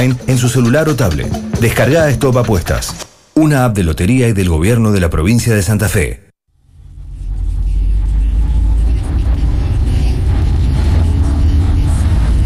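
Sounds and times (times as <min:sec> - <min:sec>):
speech: 0:00.0 - 0:06.2
engine rumble inside a moving car: 0:06.6 - 0:12.4.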